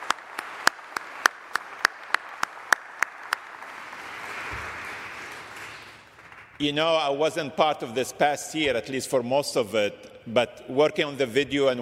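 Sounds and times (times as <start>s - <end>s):
audience applause: 0.0s - 6.6s
speech: 6.6s - 11.7s.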